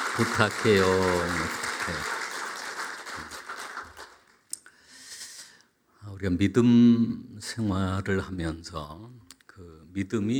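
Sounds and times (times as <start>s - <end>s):
audience applauding: 0.0s - 4.4s
speech: 0.2s - 2.2s, 6.2s - 10.3s.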